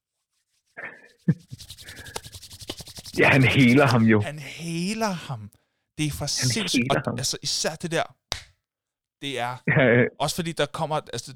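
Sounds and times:
palms rubbing together: 0.1 - 5.1
speech: 0.8 - 1.7, 3.2 - 8.2, 9.2 - 11.3
hand clap: 1.9 - 3.6, 8.3 - 8.6.

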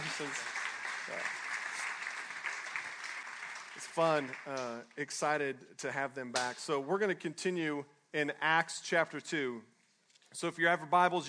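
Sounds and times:
audience applause: 0.0 - 4.8
speech: 0.2 - 0.5, 1.1 - 1.4, 4.0 - 9.7, 10.3 - 11.2.

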